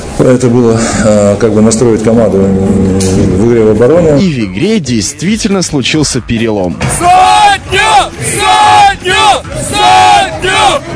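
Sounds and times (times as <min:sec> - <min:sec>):
speech: 0:00.2 - 0:10.9
basketball fans chanting in stands: 0:06.9 - 0:10.9.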